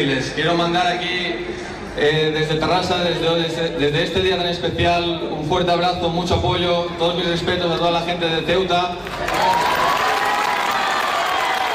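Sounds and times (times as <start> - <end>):
speech: 0.0 - 9.9
neighbours in Terrassa applauding a speech: 9.0 - 11.7.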